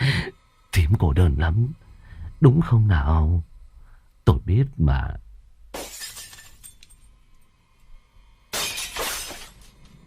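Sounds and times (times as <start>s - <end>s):
speech: 0.8s - 1.8s, 2.4s - 3.5s, 4.3s - 5.2s
basket of bowls dropped and shattering: 5.7s - 7.1s, 8.5s - 9.8s.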